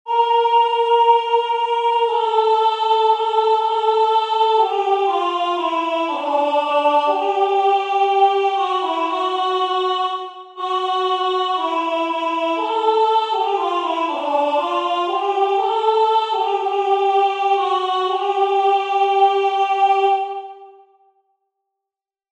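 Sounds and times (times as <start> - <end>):
soprano singing: 0.1 - 20.8.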